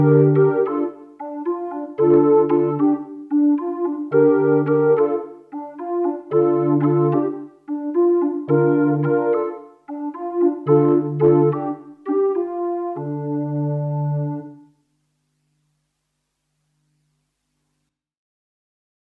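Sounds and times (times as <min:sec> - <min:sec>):
symphonic synth through Yamaha SPX90: 0:00.0 - 0:14.6.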